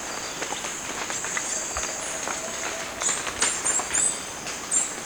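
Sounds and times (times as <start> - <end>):
Orange-eared tanager giving high thin downslurred chirps in Ecuador: 0.2 - 4.9.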